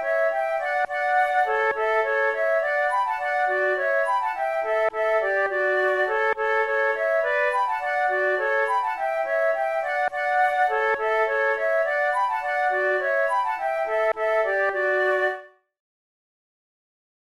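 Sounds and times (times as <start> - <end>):
flute gallopade duet: 0.0 - 15.7.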